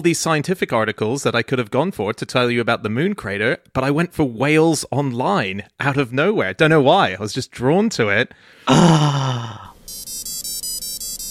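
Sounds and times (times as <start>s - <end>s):
speech: 0.0s - 9.7s
smartwatch playing TV theme tune alert: 9.9s - 11.3s.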